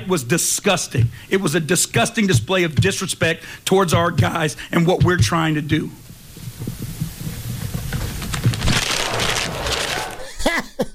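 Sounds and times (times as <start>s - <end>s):
speech: 0.0s - 6.0s
paper being crumpled up: 7.9s - 10.3s
laughter: 10.2s - 10.9s.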